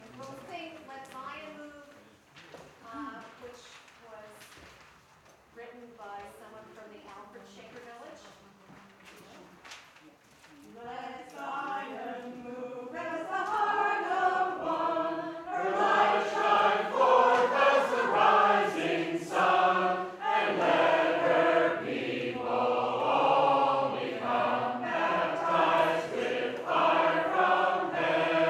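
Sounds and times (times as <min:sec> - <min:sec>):
Shaker hymn tune: 0:11.5 - 0:28.4.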